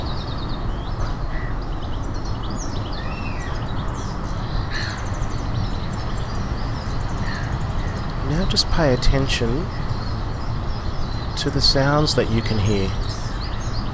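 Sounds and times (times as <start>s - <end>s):
birds singing and chirping outdoors: 0.0s - 13.9s
steady rushing low noise: 0.0s - 13.9s
speech: 8.5s - 9.9s, 11.4s - 13.1s.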